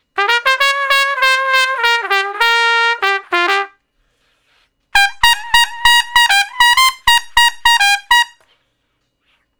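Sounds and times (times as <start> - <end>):
trumpet with straight mute playing G: 0.0 - 3.8, 5.0 - 8.4.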